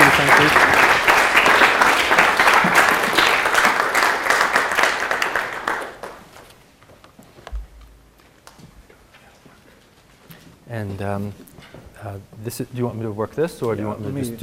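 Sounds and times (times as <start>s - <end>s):
audience applause welcoming a lecture speaker: 0.0s - 6.5s
speech: 11.1s - 14.4s.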